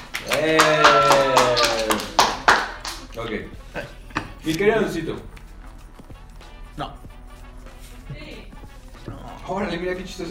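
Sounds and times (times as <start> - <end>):
hand clapping: 0.0 - 3.5, 4.1 - 4.6, 5.2 - 6.0
speech: 0.4 - 1.0, 3.2 - 5.4, 9.5 - 10.3.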